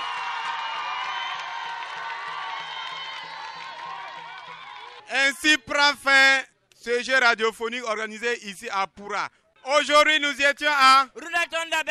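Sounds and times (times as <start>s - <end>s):
audience applauding and cheering: 0.0s - 5.1s
speech: 5.2s - 11.9s.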